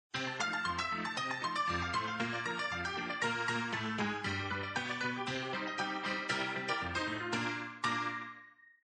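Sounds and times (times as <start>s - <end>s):
ragtime player piano: 0.1s - 8.4s.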